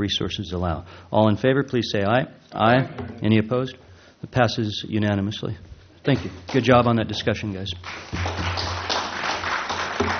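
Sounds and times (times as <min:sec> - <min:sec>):
speech: 0:00.0 - 0:08.8
audience applause: 0:07.8 - 0:10.1.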